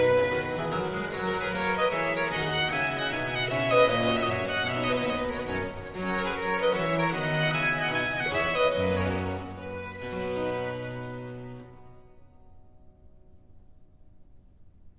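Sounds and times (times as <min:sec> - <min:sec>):
minuet for 2 violins and continuo: 0:00.0 - 0:11.9.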